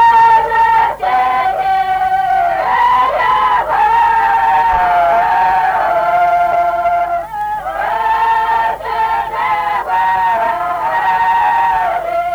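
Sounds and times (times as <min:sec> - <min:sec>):
drawn-out folk song singing: 0:00.0 - 0:12.3.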